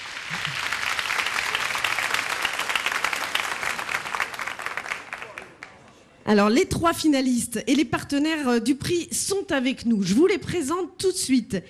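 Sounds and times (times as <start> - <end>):
audience applause: 0.0 - 5.9
speech: 6.3 - 11.6.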